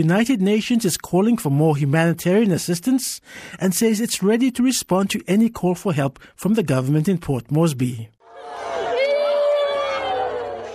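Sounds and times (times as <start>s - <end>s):
speech: 0.0s - 8.7s
women wailing in a crowd as tribal-fight victims' bodies are carried through Porgera: 8.3s - 10.7s.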